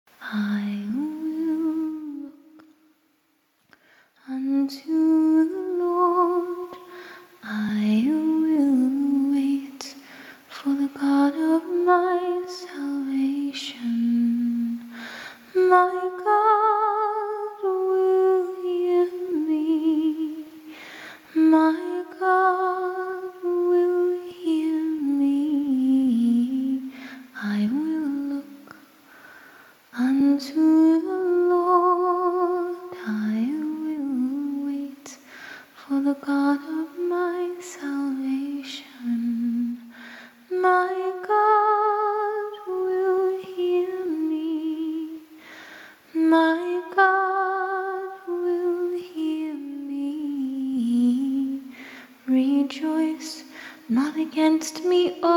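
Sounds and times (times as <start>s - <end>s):
a cappella scripture singing: 0.2s - 2.8s, 4.2s - 29.0s, 29.8s - 45.5s, 46.1s - 55.3s.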